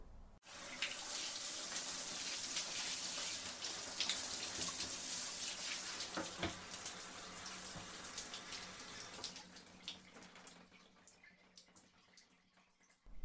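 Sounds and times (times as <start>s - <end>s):
tap water running to fill a bath: 0.4s - 13.1s.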